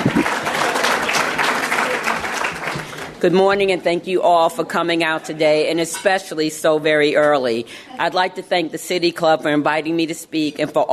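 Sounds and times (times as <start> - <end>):
audience applause: 0.0 - 3.2
speech: 3.2 - 10.9.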